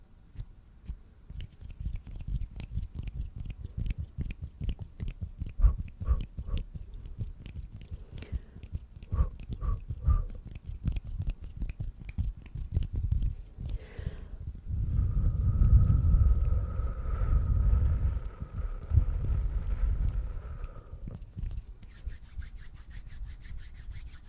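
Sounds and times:
hands rubbing with crackling taps: 0:00.4 - 0:24.2.

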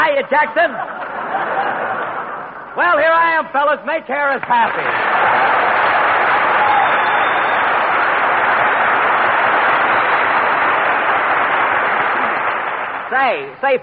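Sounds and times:
speech: 0:00.2 - 0:01.9, 0:02.8 - 0:05.6, 0:13.1 - 0:13.8
laughter: 0:00.6 - 0:02.7
studio audience applause: 0:04.5 - 0:13.5.

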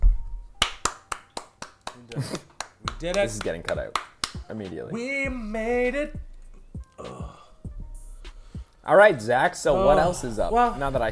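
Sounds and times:
handclaps: 0:00.6 - 0:04.5
speech: 0:02.0 - 0:06.3, 0:08.9 - 0:11.1.

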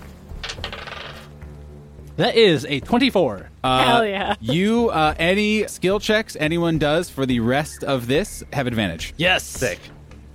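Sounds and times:
dice being rolled: 0:00.4 - 0:01.4
speech: 0:02.2 - 0:10.0.

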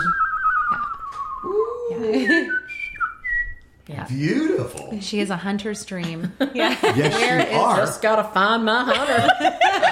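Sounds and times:
person whistling a birdlike call: 0:00.0 - 0:03.6
speech: 0:01.5 - 0:02.6, 0:04.1 - 0:09.6
laughter: 0:06.3 - 0:07.8, 0:08.9 - 0:09.9.

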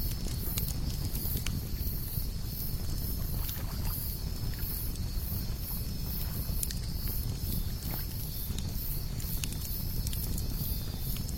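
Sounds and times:
campfire crackles and pops: 0:00.0 - 0:11.3
lakeside campfire roaring: 0:00.0 - 0:11.3.

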